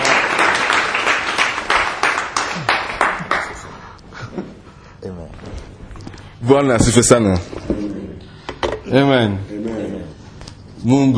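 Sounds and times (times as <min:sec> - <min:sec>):
audience clapping: 0:00.0 - 0:04.0
speech: 0:06.5 - 0:07.6, 0:08.9 - 0:09.5, 0:10.8 - 0:11.1.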